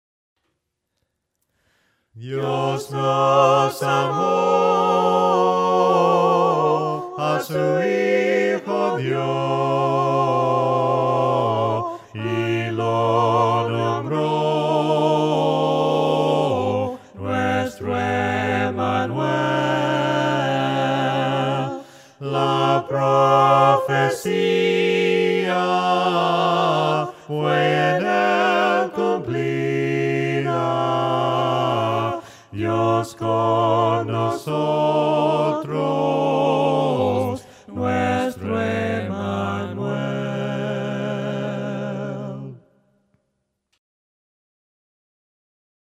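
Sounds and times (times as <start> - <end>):
voices singing hymns a cappella: 2.2 - 42.8.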